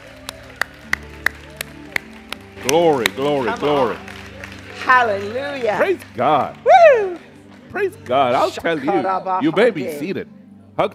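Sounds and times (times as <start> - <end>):
audience clapping in a steady beat: 0.0 - 8.6
speech: 2.6 - 4.1, 4.9 - 6.7, 7.7 - 10.9.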